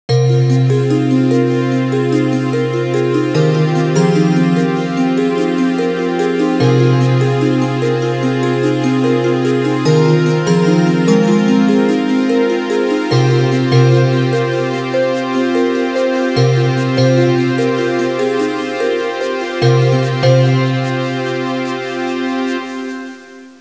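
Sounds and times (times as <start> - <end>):
rhythmic ringtone music: 0.1 - 23.5.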